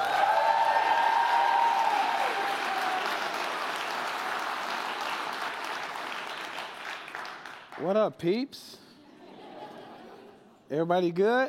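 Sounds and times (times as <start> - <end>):
audience applause welcoming a speaker to the stage: 0.0 - 7.8
speech: 7.8 - 8.8, 10.7 - 11.4
laughter: 9.0 - 10.6.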